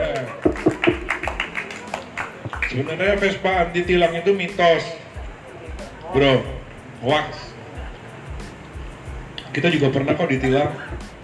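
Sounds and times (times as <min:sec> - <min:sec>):
people clapping: 0:00.0 - 0:03.7
speech: 0:02.7 - 0:05.0, 0:06.1 - 0:07.5, 0:09.5 - 0:11.0.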